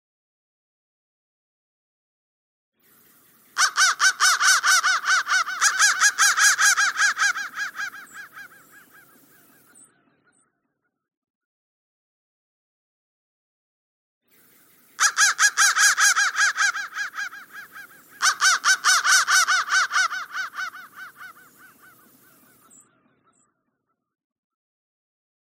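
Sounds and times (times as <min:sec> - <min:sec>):
crow cawing: 0:03.6 - 0:09.8, 0:15.0 - 0:23.4.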